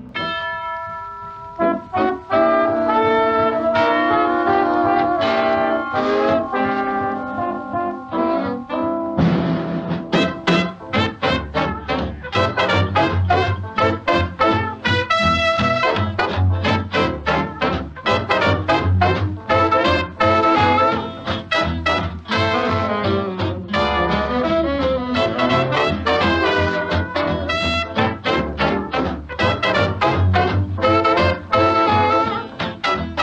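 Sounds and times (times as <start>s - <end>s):
bell: 0.1s - 2.2s, 3.2s - 9.1s
three saxophones: 0.1s - 33.2s
lead big-band trombone: 1.6s - 33.2s.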